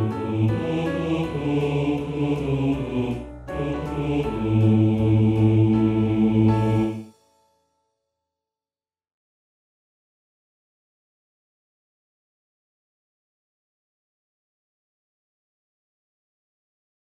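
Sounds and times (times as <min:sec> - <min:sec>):
bass: 0:00.0 - 0:07.0.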